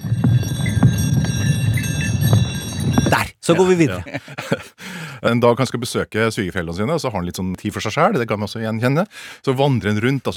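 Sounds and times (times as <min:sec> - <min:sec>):
bell sound effect: 0:00.0 - 0:04.2
laughter: 0:03.1 - 0:05.2
speech: 0:03.5 - 0:10.3.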